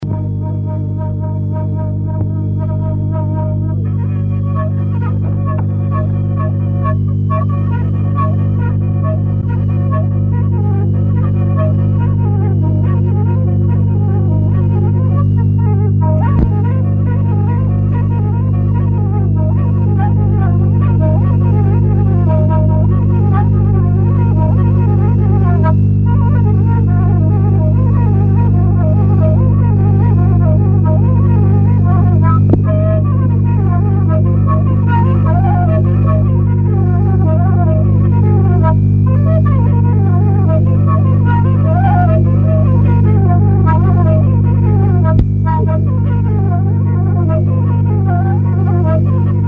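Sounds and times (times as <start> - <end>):
folk tune played on fluier: 0.0 - 49.4.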